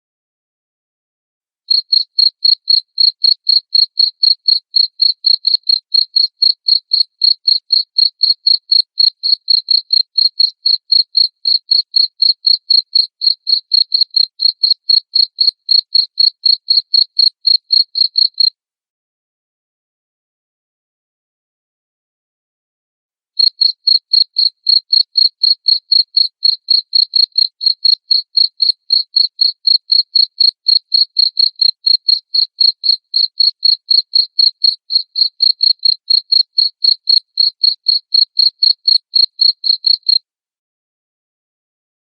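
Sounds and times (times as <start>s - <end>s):
cricket chirping: 1.7s - 18.5s, 23.4s - 40.2s.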